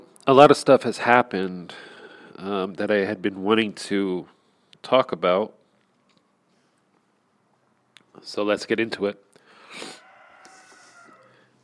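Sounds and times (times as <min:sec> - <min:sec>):
speech: 0:00.3 - 0:05.6, 0:08.2 - 0:10.0
rooster crowing: 0:09.7 - 0:11.6.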